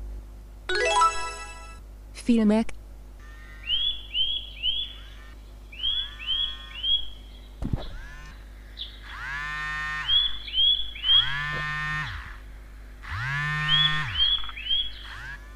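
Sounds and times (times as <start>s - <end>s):
speech: 2.3s - 2.8s
bird sound set as device alarm: 3.2s - 15.4s
device alarm vibration: 7.8s - 8.4s, 9.0s - 15.5s.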